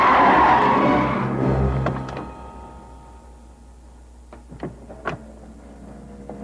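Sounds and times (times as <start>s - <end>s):
fast-driven car skidding suddenly to a stop: 0.0s - 1.8s.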